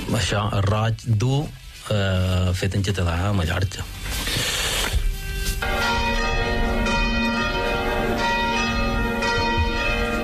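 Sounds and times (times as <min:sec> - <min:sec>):
speech: 0:00.1 - 0:04.5
bells ringing: 0:05.3 - 0:10.2.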